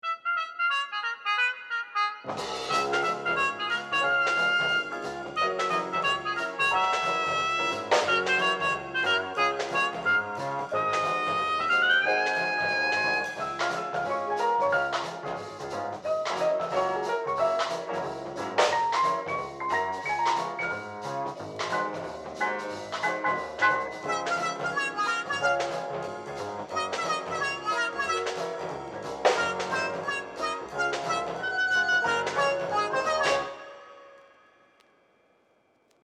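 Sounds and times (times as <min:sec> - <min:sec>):
up-tempo jazz: 0:00.2 - 0:34.2.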